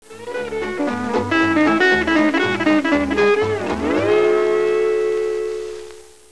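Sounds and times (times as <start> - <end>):
instrumental music: 0.0 - 6.3.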